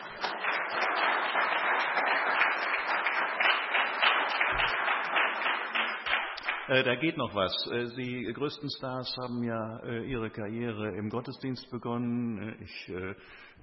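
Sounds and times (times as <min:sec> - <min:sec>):
audience applause: 0:00.0 - 0:06.7
speech: 0:06.7 - 0:13.5.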